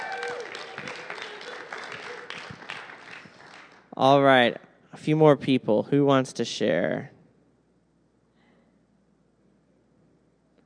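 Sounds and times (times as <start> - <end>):
group clapping: 0.0 - 4.0
speech: 4.0 - 7.2.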